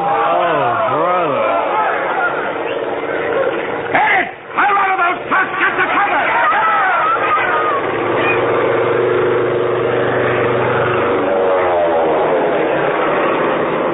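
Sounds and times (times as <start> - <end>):
low-flying propeller plane passing overhead: 0.2 - 13.9.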